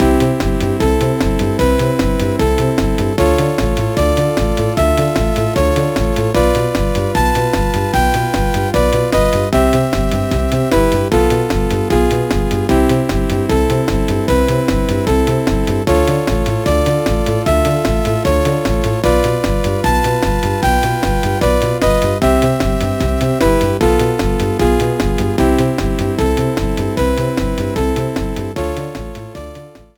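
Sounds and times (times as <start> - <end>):
video game world four map music: 0.0 - 29.9.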